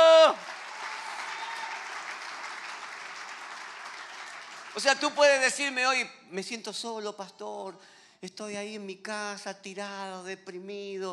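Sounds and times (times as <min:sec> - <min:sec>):
audience applause: 0:00.0 - 0:05.2
speech: 0:04.8 - 0:11.1.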